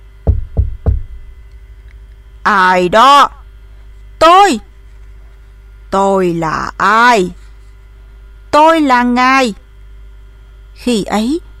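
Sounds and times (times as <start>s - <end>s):
knocking on a door: 0.2s - 1.2s
speech: 2.4s - 3.4s, 4.2s - 4.7s, 5.9s - 7.4s, 8.5s - 9.6s, 10.8s - 11.5s.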